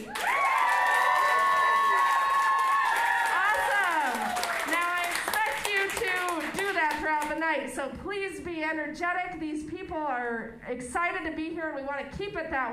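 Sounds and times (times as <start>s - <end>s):
audience applause and cheering: 0.0s - 6.6s
speech: 7.6s - 12.7s.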